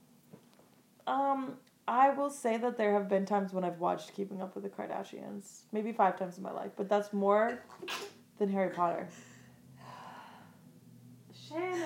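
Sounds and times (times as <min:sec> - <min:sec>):
speech: 0:01.1 - 0:09.3
person sneezing: 0:07.8 - 0:08.2.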